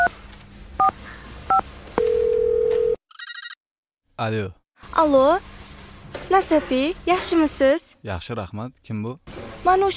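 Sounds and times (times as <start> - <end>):
bright electronic telephone ringing pulses: 2.0 - 3.6
dual-tone telephone dialing beeps: 3.1 - 3.6
speech: 4.2 - 5.5, 6.3 - 9.9.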